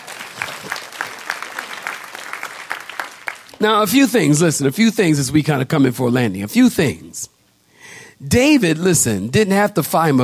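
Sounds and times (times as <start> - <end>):
audience clapping hands: 0.0 - 4.0
speech: 3.6 - 7.4, 8.2 - 10.2.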